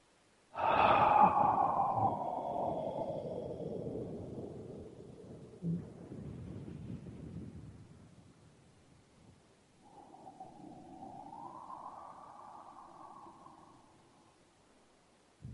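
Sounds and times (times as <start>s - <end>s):
person exhaling deep breath during a sound healing treatment: 0.6s - 4.7s, 9.8s - 14.0s.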